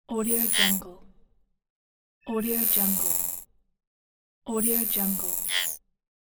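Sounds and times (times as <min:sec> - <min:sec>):
futuristic device scanning: 0:00.2 - 0:00.8, 0:02.4 - 0:03.5, 0:04.6 - 0:05.8.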